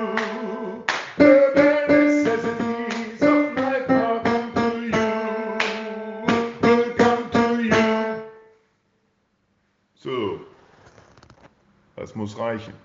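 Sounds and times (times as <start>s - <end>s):
tenor singing at tempo: 0.0s - 8.3s.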